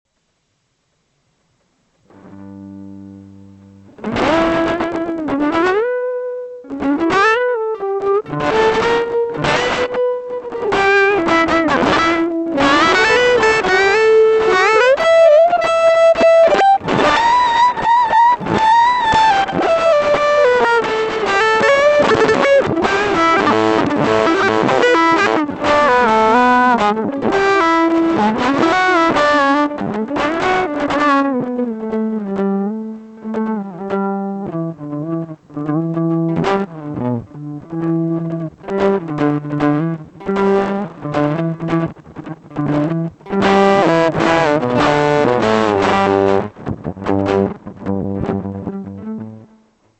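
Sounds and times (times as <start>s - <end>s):
guitar: 1.4s - 49.9s.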